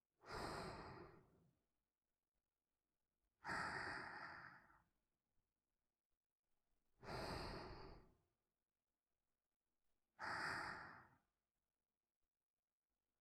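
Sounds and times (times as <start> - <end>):
person breathing in sleep: 0.2 - 1.4, 3.4 - 4.9, 7.0 - 8.2, 10.2 - 11.3.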